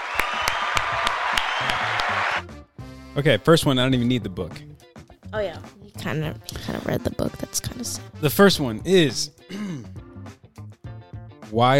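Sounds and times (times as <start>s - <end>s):
clapping applause: 0.0s - 2.5s
speech: 3.2s - 9.7s, 11.5s - 11.7s.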